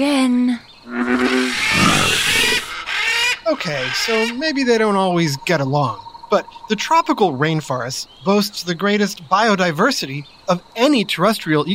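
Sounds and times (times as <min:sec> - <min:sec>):
frog croaking loudly: 0:00.6 - 0:11.1
speech: 0:03.5 - 0:11.7.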